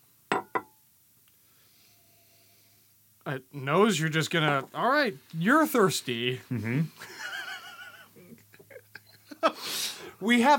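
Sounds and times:
glasses clinking in a toast: 0.3s - 0.8s
speech: 3.3s - 7.2s, 10.2s - 10.5s
laughter: 6.6s - 9.6s.

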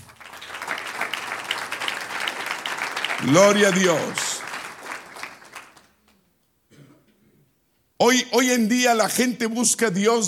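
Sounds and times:
audience applause: 0.0s - 6.0s
speech: 3.2s - 4.2s, 8.0s - 10.2s.

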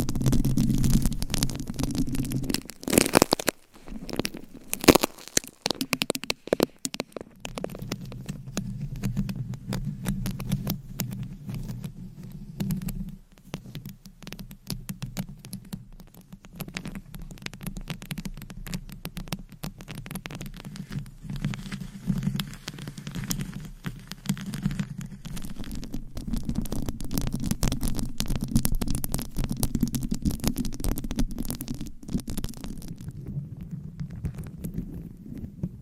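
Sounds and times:
dense scratchy crackle: 0.0s - 35.7s.

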